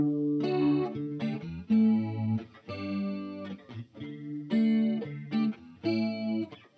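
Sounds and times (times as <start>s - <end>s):
electric guitar through an Old Blood Noise Endeavors Visitor pedal, tremolo chorus phaser: 0.0s - 6.7s.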